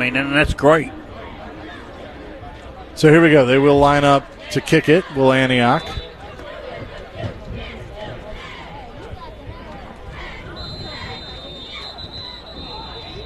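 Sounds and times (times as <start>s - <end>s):
speech: 0.0s - 1.0s, 3.0s - 6.0s
referee whistles on a football field: 5.5s - 6.2s, 10.4s - 13.2s.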